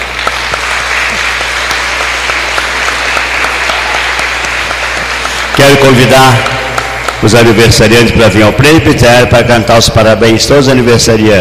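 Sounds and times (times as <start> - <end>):
applause for prize winners: 0.0 - 8.8
speech: 5.6 - 6.5, 7.2 - 11.3.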